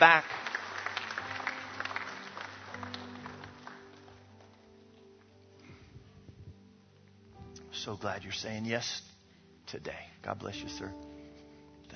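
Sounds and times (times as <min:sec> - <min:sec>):
speech: 0:00.0 - 0:00.4, 0:07.8 - 0:09.1, 0:09.7 - 0:11.1
audience applause from a sizable crowd: 0:00.0 - 0:04.7.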